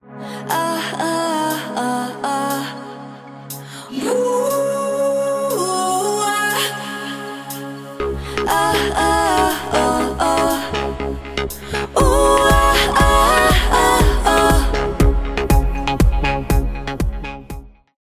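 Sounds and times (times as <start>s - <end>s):
summer music: 0.0s - 18.0s.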